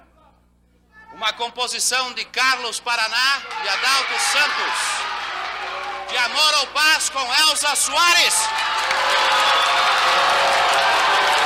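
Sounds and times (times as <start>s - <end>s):
speech: 1.2s - 5.3s, 6.1s - 9.4s
audience applause in an auditorium: 3.4s - 11.4s.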